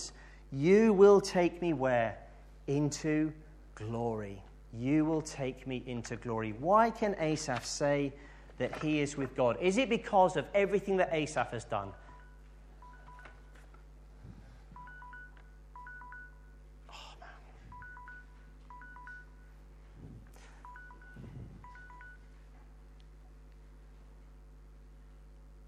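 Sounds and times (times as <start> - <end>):
speech: 0.5 - 12.0
timer alarm beeping: 12.0 - 13.5, 14.8 - 16.6, 17.7 - 19.6, 20.4 - 22.3
low hum: 12.0 - 25.6.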